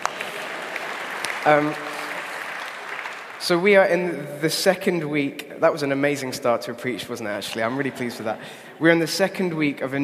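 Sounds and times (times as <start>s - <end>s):
crowd applause: 0.0s - 3.6s
speech: 1.4s - 1.9s, 3.4s - 10.0s.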